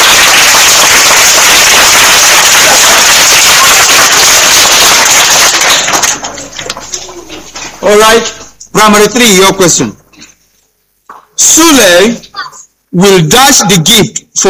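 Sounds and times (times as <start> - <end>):
round of applause: 0.0 - 7.0
speech: 7.9 - 10.0, 11.8 - 12.2, 13.0 - 14.4.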